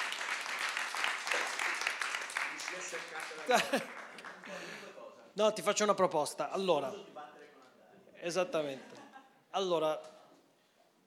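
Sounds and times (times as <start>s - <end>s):
audience applauding: 0.0s - 4.9s
speech: 2.8s - 7.2s, 8.2s - 10.2s
laughter: 3.1s - 5.0s, 8.6s - 9.4s.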